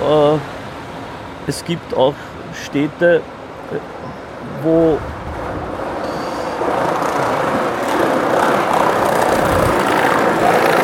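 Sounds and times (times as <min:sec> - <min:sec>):
speech: 0:00.1 - 0:00.6, 0:01.5 - 0:05.2
skateboard rolling past on pavement: 0:05.0 - 0:10.8.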